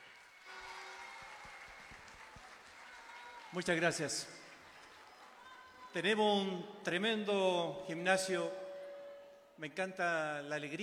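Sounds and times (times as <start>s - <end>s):
crowd applauding in a gymnasium: 0.0s - 6.2s
speech: 3.5s - 4.4s, 6.0s - 8.6s, 9.6s - 10.8s.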